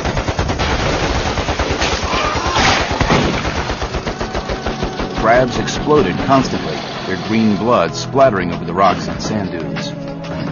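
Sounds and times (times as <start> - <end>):
rapid automatic rifle fire: 0.0 - 6.4
speech: 5.4 - 10.1.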